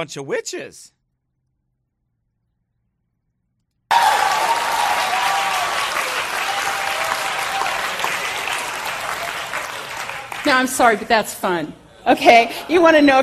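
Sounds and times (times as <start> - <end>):
speech: 0.0 - 1.0, 10.4 - 13.2
audience clapping: 3.9 - 11.2.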